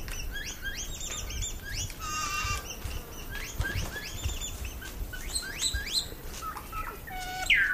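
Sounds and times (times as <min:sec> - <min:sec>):
male and female saddleback pair making quiet fluting calls: 0:00.3 - 0:07.7.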